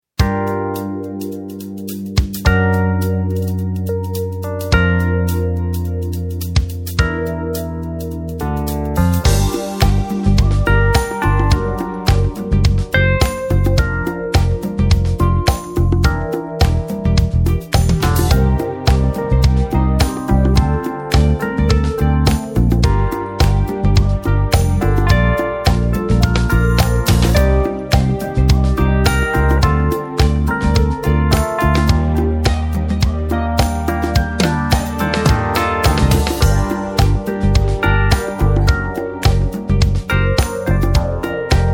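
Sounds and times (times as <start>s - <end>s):
funk music: 0.1s - 41.7s.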